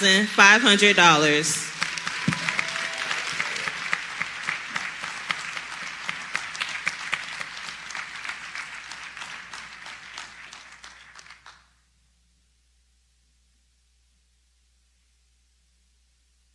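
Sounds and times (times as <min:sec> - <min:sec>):
speech: 0:00.0 - 0:01.7
audience applause: 0:00.5 - 0:11.6.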